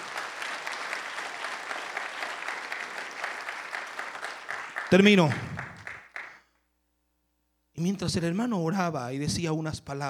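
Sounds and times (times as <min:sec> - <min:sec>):
audience applause: 0:00.0 - 0:06.4
speech: 0:04.9 - 0:05.5, 0:07.8 - 0:10.0.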